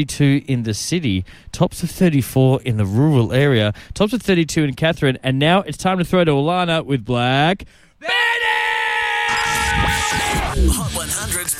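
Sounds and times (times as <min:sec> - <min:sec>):
speech: 0:00.0 - 0:11.5
loud piercing scream: 0:08.0 - 0:10.6.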